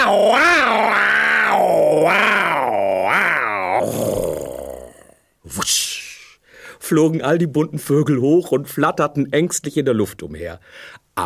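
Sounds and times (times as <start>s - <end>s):
man's voice imitating a tiger's roar: 0.0s - 5.2s
speech: 6.9s - 11.2s.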